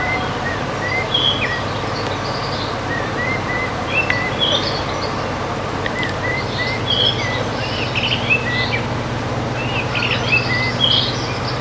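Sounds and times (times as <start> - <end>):
faint chirps from other birds: 0.0 - 8.9, 9.5 - 11.5
Eurasian blackcap singing thin whistled notes: 0.0 - 11.5
low background hum: 0.0 - 11.5.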